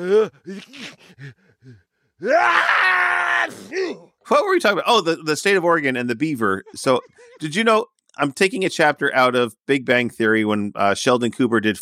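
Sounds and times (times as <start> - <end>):
person sneezing: 0.0 - 1.2, 3.5 - 4.1
speech: 0.0 - 11.8
laughter: 6.2 - 7.8.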